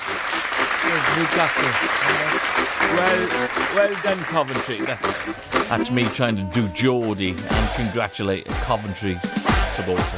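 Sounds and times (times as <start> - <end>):
applause: 0.0 - 5.4
speech: 0.4 - 10.1.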